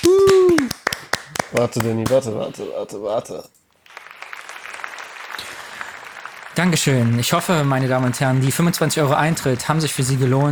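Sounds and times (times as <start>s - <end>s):
audience applause at a live stage show: 0.0s - 2.3s, 3.8s - 10.4s
speech: 1.5s - 3.6s, 6.6s - 10.4s.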